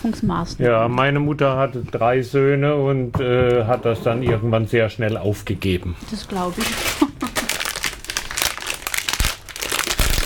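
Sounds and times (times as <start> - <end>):
speech: 0.0 - 7.0
underwear fabric crinkling and rustling: 6.1 - 10.2.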